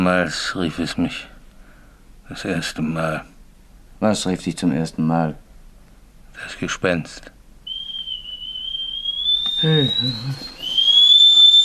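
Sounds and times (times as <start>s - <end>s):
speech: 0.0s - 1.3s, 2.3s - 3.3s, 4.0s - 5.4s, 6.4s - 7.4s, 9.6s - 10.6s
kettle whistling as water boils: 7.7s - 11.6s.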